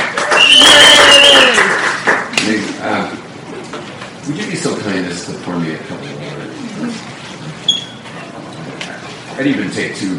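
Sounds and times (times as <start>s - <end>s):
crowd applause: 0.0s - 2.3s
high sustained whistle: 0.3s - 1.6s
speech: 4.3s - 6.2s, 9.4s - 10.1s.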